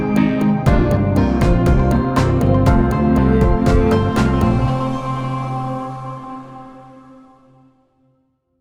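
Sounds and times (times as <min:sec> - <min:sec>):
quest game music: 0:00.0 - 0:06.8.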